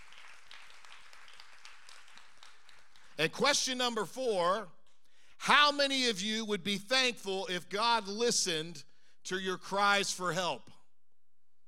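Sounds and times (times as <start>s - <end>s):
audience clapping: 0.0s - 3.6s
speech: 3.2s - 4.8s, 5.4s - 10.7s.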